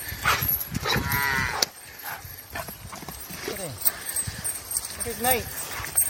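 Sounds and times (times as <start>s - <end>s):
well-fed calves mooing as they escape from the barn: 0.2s - 2.0s
speech: 5.1s - 5.6s.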